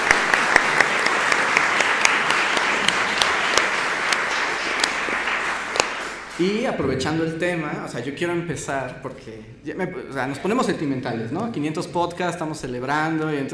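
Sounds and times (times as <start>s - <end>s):
audience applause: 0.0s - 6.8s
speech: 6.4s - 13.5s.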